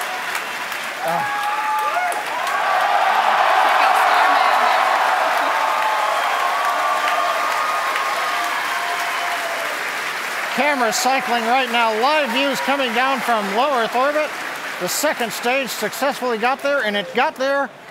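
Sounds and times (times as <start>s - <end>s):
large crowd applauding and cheering: 0.0s - 17.3s
speech: 1.0s - 1.4s, 10.6s - 17.8s.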